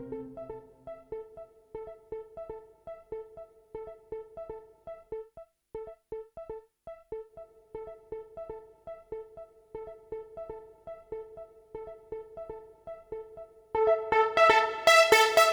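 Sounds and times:
JunoDS88 JP8000 synth brass filter sequence: 13.8s - 15.5s.

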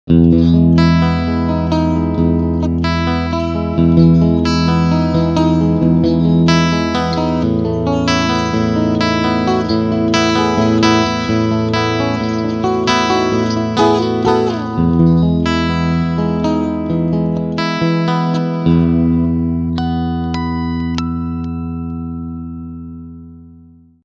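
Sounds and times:
electric guitar on bridge single-coil and humbucker pickups: 0.1s - 24.0s.

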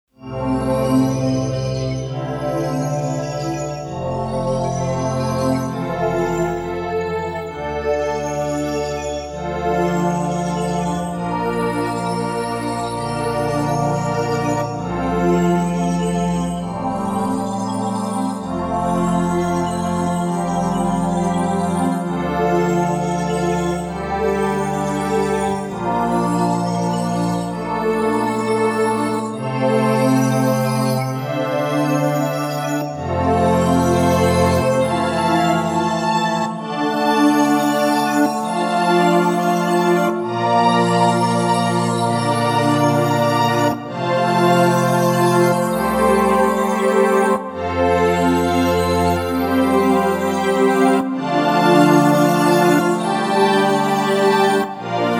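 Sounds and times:
sparkle sound effect: 0.2s - 55.1s.

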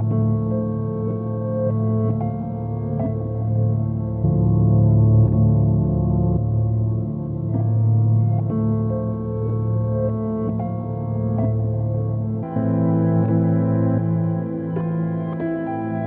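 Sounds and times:
piano: 0.0s - 16.0s.

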